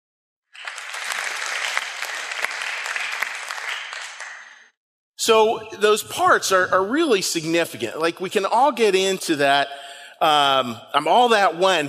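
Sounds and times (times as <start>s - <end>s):
round of applause: 0.5s - 4.8s
speech: 5.2s - 11.8s.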